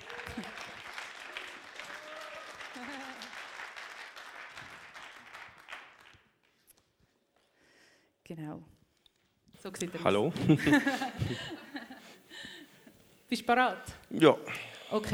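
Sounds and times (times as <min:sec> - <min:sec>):
scattered cheers: 0:00.0 - 0:03.3
audience applause: 0:00.0 - 0:06.4
laughter: 0:02.7 - 0:03.4, 0:10.2 - 0:12.6
speech: 0:08.3 - 0:08.8, 0:09.6 - 0:11.6, 0:13.3 - 0:15.1.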